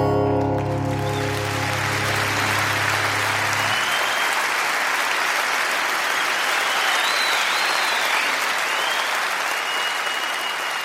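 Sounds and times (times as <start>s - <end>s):
audience applause: 0.2s - 10.8s.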